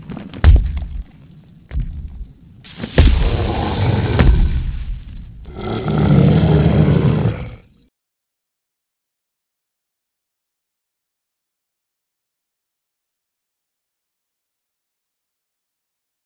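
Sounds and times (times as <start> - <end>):
mist monster walking: 0.0 - 7.4.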